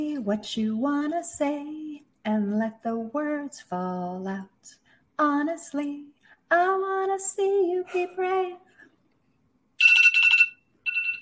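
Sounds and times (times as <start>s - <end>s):
speech: 0.0s - 8.6s
timer alarm ringing: 9.8s - 11.2s.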